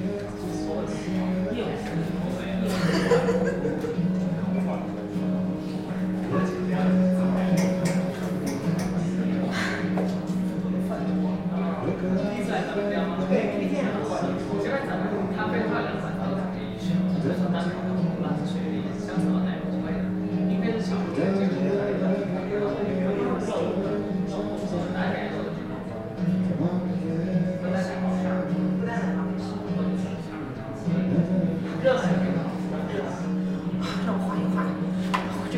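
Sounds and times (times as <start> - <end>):
murmur of overlapping voices in a café: 0.0 - 35.5
man chuckling: 2.6 - 4.2, 33.8 - 35.0.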